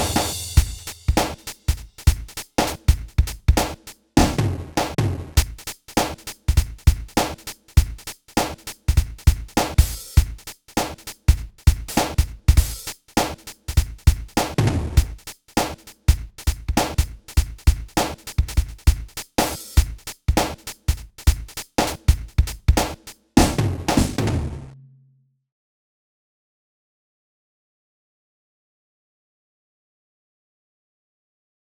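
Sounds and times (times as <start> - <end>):
drums: 0.0 - 24.8.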